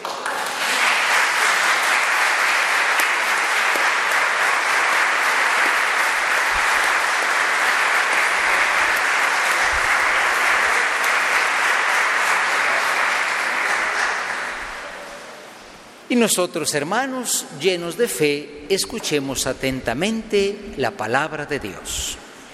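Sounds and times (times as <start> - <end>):
audience applauding: 0.0 - 15.4
speech: 16.2 - 22.2.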